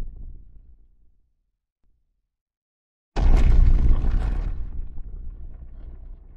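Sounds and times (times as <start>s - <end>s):
giant walking: 3.2s - 6.3s.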